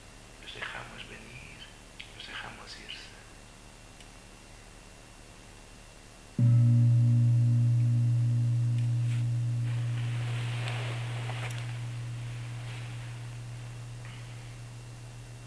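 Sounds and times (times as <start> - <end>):
meditation gong ringing: 6.4 - 15.4.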